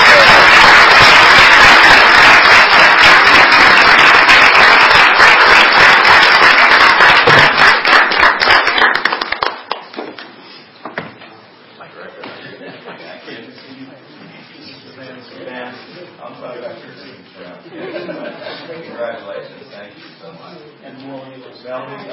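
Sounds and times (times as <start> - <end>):
audience applause at a ceremony honoring teams: 0.0 - 10.4
laughter: 17.6 - 19.1.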